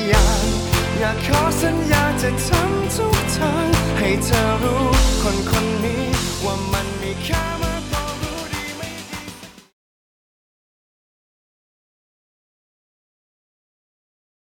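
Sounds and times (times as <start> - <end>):
16-bar backing track music: 0.0 - 9.7.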